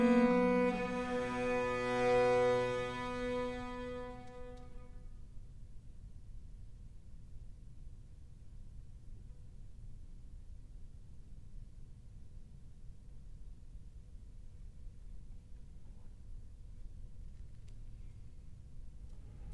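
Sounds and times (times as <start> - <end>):
duo in C for two viols: 0.0 - 4.9.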